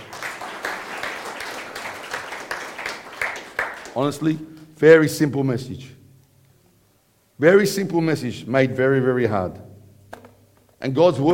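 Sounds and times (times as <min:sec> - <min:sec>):
audience clapping: 0:00.0 - 0:04.7
speech: 0:04.0 - 0:06.0, 0:07.4 - 0:09.7, 0:10.8 - 0:11.3.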